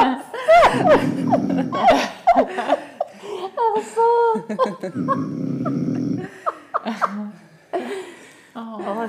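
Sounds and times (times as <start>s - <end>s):
laughter: 0.0s - 8.1s
man gently snoring: 0.8s - 2.1s, 5.0s - 6.4s.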